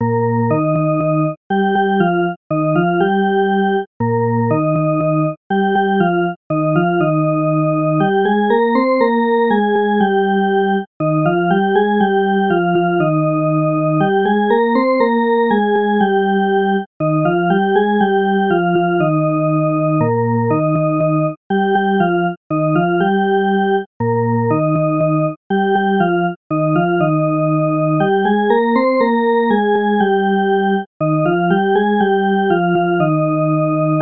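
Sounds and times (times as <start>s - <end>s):
organ: 0.0s - 34.0s.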